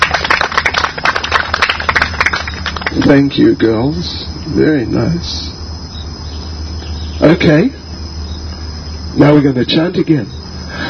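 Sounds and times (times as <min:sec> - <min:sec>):
small group clapping for performers at a Hare Krishna gathering: 0:00.0 - 0:03.3
low steady hum: 0:00.0 - 0:10.8
speech: 0:03.0 - 0:05.6, 0:07.2 - 0:07.8, 0:09.2 - 0:10.4.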